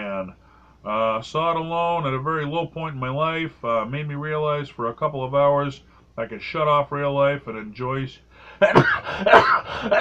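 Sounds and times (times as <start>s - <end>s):
speech: 0.2s - 9.9s
person sneezing: 8.6s - 9.9s.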